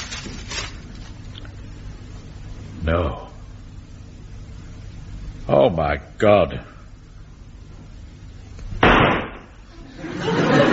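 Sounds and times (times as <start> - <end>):
speech: 2.8 - 3.3, 5.5 - 6.7
gunshot: 8.8 - 9.5
laughter: 9.7 - 10.7.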